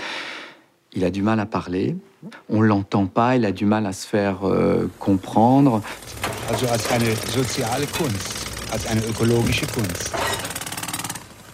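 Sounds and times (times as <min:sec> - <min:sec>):
speech: 0:00.9 - 0:10.4
construction work noise: 0:05.0 - 0:11.5.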